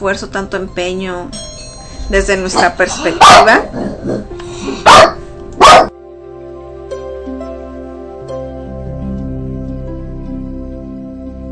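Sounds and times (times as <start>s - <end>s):
speech: 0.0s - 1.5s, 2.1s - 5.2s
small female dog barking at doorbell: 3.2s - 3.7s, 4.8s - 5.9s.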